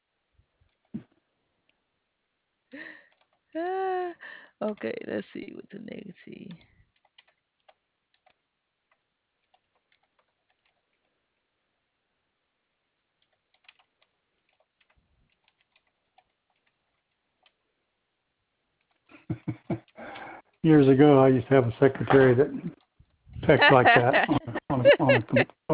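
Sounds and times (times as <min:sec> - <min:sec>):
speech: 0:03.6 - 0:03.9, 0:04.6 - 0:06.7, 0:20.6 - 0:22.8, 0:23.5 - 0:25.7
typing on a keyboard: 0:06.5 - 0:08.4, 0:09.4 - 0:11.1, 0:13.2 - 0:17.6
laughter: 0:19.2 - 0:19.9, 0:23.4 - 0:25.7.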